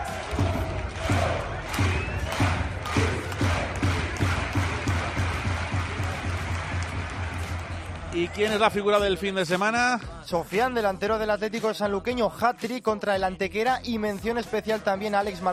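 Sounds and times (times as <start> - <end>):
football fans' ovation: 0.0 - 9.3
speech: 8.2 - 15.5.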